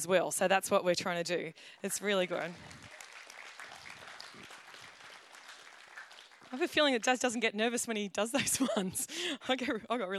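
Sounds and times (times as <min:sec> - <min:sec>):
speech: 0:00.0 - 0:02.9, 0:06.5 - 0:10.1
audience clapping: 0:02.0 - 0:07.3.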